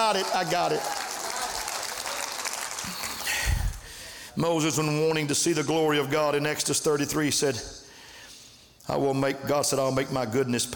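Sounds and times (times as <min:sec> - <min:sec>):
audience clapping hands: 0:00.0 - 0:04.0
speech: 0:00.1 - 0:01.0, 0:04.4 - 0:07.9, 0:08.8 - 0:10.7.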